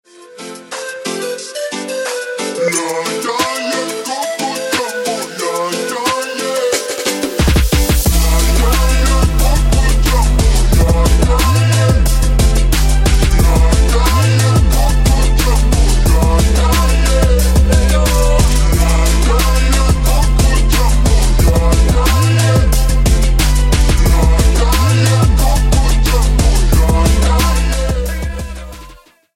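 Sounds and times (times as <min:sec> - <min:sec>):
phonk remix: 0:00.2 - 0:29.2.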